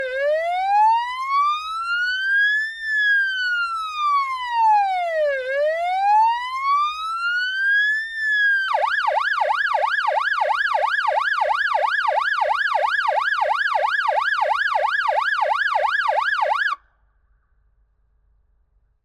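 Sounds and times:
ambulance siren: 0:00.0 - 0:16.8.

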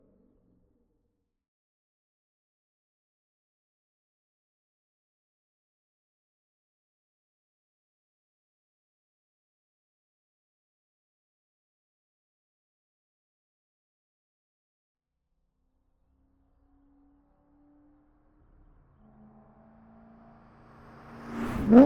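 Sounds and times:
2004 Corvette C5 driving by: 0:16.9 - 0:21.8.

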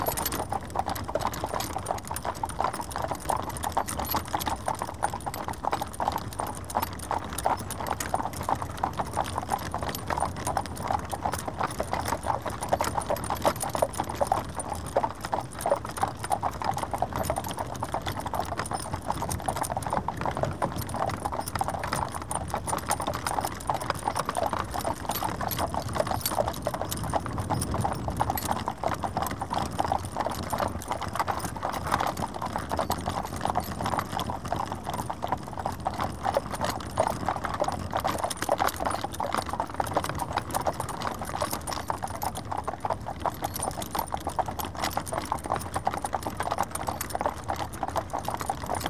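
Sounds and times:
horse hooves clopping: 0:00.0 - 0:48.8.

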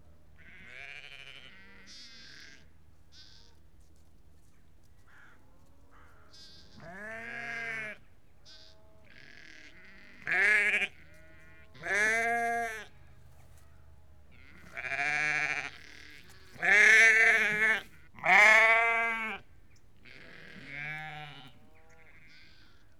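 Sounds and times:
sheep bleating: 0:00.4 - 0:03.5, 0:06.3 - 0:13.0, 0:14.3 - 0:19.4, 0:20.0 - 0:22.8.

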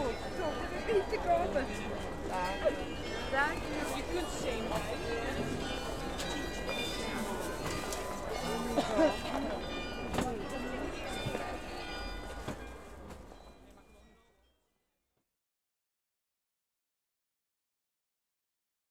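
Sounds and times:
busy market in Holland: 0:00.0 - 0:14.8.

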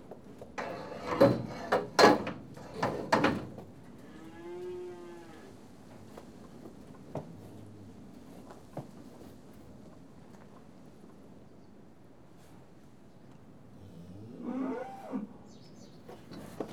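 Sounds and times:
loud metallic clanks and knocks: 0:00.6 - 0:03.6
cattle lowing: 0:04.1 - 0:05.6, 0:14.0 - 0:15.3.

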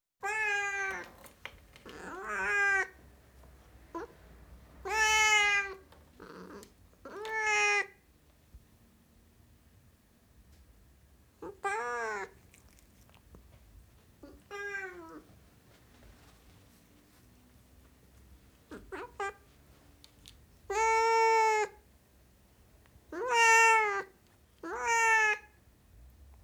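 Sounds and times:
Siamese cat meowing loudly: 0:00.2 - 0:01.2, 0:01.9 - 0:03.0, 0:04.8 - 0:08.0, 0:11.4 - 0:12.4, 0:14.2 - 0:15.2, 0:20.7 - 0:21.8, 0:23.1 - 0:25.6.

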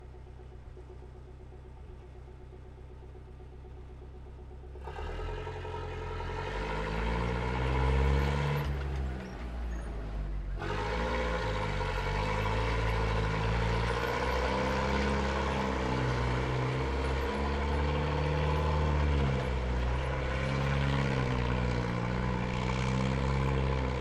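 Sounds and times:
Renault R35 tank driving past fast: 0:04.9 - 0:24.0.

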